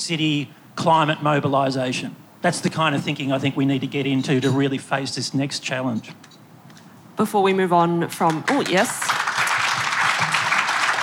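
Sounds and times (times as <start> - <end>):
speech: 0.0 - 6.4, 7.2 - 9.2
audience applause: 8.3 - 11.0.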